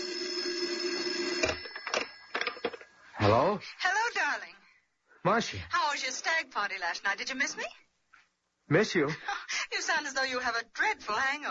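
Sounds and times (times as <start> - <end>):
shrill telephone ringing: 0.0 - 3.4
speech: 3.2 - 3.9, 5.2 - 7.9, 8.7 - 11.4.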